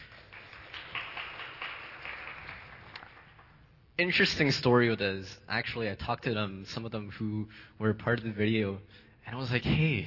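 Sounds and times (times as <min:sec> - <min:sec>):
audience applause: 0:00.0 - 0:03.6
speech: 0:04.0 - 0:10.0.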